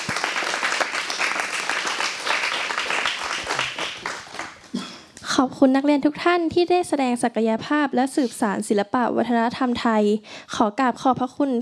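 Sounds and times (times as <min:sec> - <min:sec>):
audience applause: 0:00.0 - 0:04.7
speech: 0:05.4 - 0:11.6.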